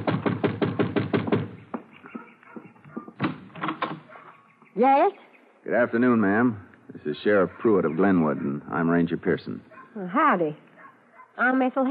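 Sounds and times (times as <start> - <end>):
knocking on a door: 0.0 - 4.0
speech: 4.8 - 10.7, 11.4 - 11.8.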